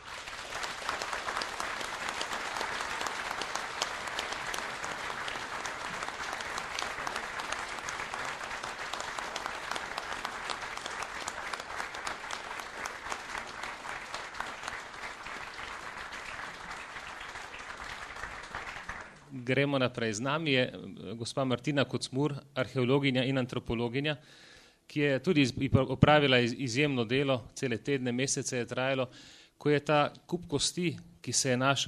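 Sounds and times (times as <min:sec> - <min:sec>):
audience applause: 0:00.0 - 0:19.3
speech: 0:19.5 - 0:31.8.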